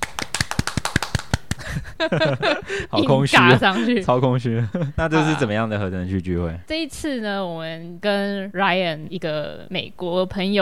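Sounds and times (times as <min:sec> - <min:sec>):
sharp quick handclaps sound effect: 0:00.0 - 0:01.8
laughter: 0:01.6 - 0:05.7
speech: 0:02.0 - 0:10.6.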